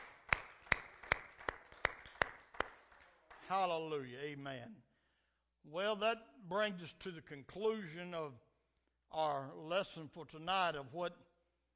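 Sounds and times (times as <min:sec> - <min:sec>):
audience clapping hands in rhythm: 0:00.0 - 0:03.9
speech: 0:03.5 - 0:04.9, 0:05.6 - 0:08.5, 0:09.1 - 0:11.3.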